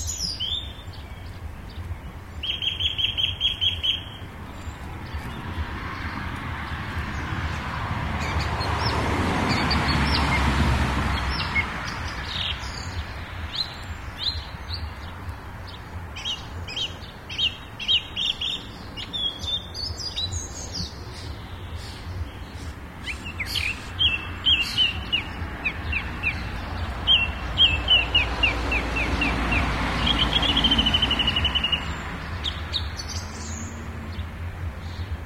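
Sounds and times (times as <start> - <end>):
birds: 0.0 - 35.2
cars: 0.0 - 35.2.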